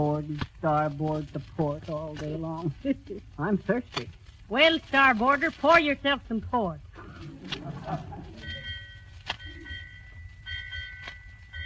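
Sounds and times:
speech: 0.0s - 8.4s
laughter: 2.6s - 3.6s, 7.0s - 8.7s
bell ringing: 8.3s - 11.6s.

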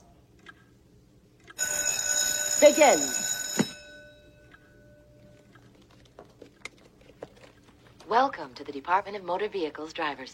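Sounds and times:
bell ringing to start a test: 1.6s - 5.4s
speech: 2.6s - 3.3s, 8.1s - 10.3s.

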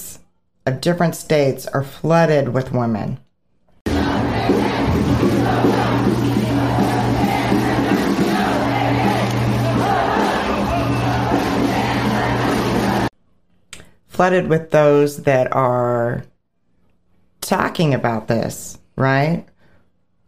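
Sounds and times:
speech: 0.7s - 3.2s, 14.2s - 16.3s, 17.5s - 19.5s
protest crowd screaming and chanting: 3.9s - 13.1s.

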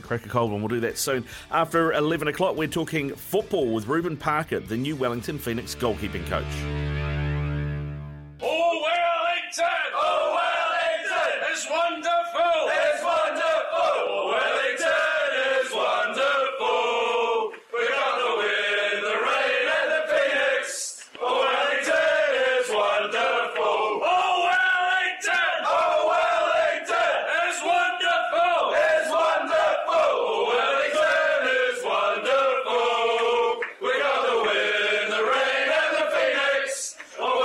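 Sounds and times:
speech: 0.1s - 7.0s
football supporters chanting a club chant: 8.4s - 37.4s.

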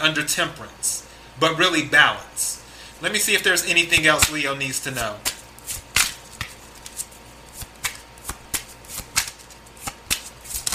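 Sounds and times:
speech: 0.0s - 5.4s
tarot cards being shuffled by hand: 3.4s - 10.7s.

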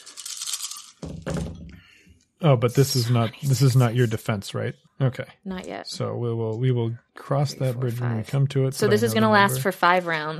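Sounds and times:
dice being rolled: 0.0s - 1.2s
speech: 2.4s - 10.3s.

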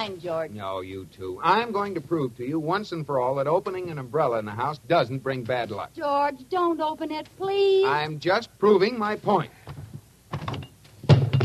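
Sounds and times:
speech: 0.0s - 9.8s
hammer falling onto a foot: 9.8s - 11.4s.

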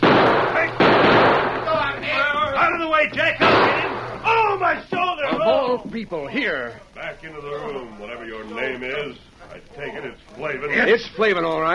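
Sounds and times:
gunshots during a shootout: 0.0s - 4.6s
speech: 2.8s - 3.8s, 4.6s - 11.7s.

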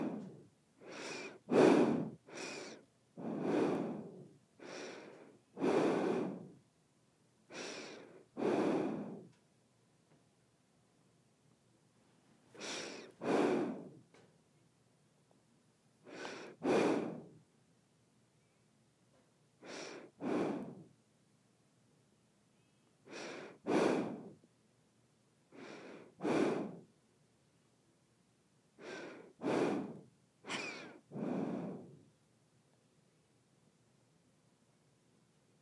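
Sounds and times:
nose breathing: 0.0s - 6.6s, 7.5s - 9.4s, 12.6s - 14.0s, 16.0s - 17.4s, 19.6s - 20.9s, 23.1s - 24.4s, 25.5s - 26.9s, 28.8s - 32.1s.

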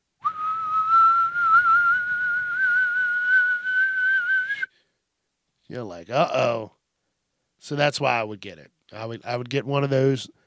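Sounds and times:
tea kettle whistling: 0.2s - 4.7s
speech: 5.7s - 6.8s, 7.6s - 10.4s.

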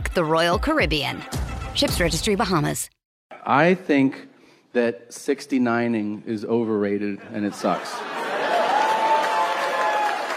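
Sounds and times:
speech: 0.2s - 8.1s
laughter: 7.1s - 9.3s
scattered clapping from part of an audience: 8.8s - 10.3s.

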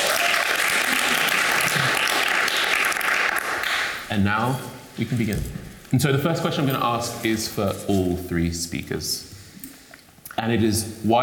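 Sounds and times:
audience clapping to welcome a panel at a talk on craft: 0.0s - 4.1s
speech: 4.1s - 9.3s, 10.4s - 11.2s.

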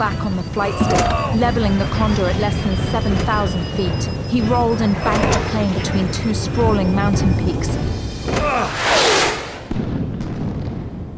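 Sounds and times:
speech: 0.0s - 8.8s
missiles exploding against mountains: 8.6s - 11.1s.

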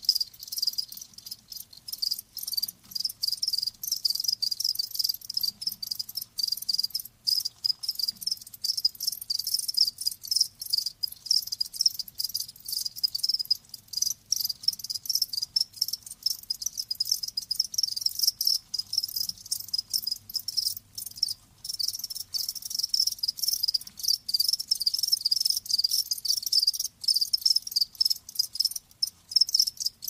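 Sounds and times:
cricket chorus chirping: 0.0s - 30.0s.

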